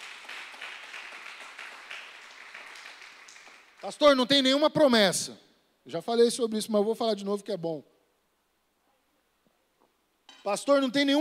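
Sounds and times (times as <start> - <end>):
audience applause: 0.0 - 3.9
speech: 3.8 - 7.9, 10.4 - 11.2.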